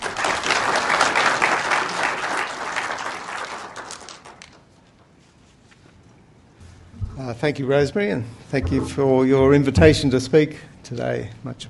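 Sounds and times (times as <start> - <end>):
audience applauding a speaker at a talk on political biography: 0.0 - 4.5
speech: 7.4 - 11.6.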